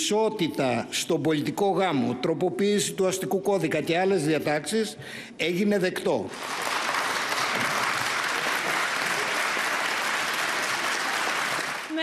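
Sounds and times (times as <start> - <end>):
speech: 0.1 - 6.9
prolonged applause in parliament: 6.3 - 12.0.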